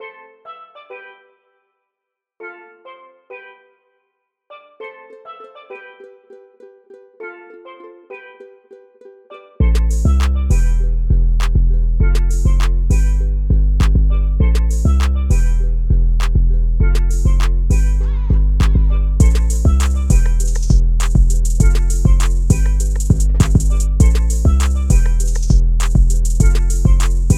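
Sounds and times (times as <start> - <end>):
island beat: 9.6 - 27.3.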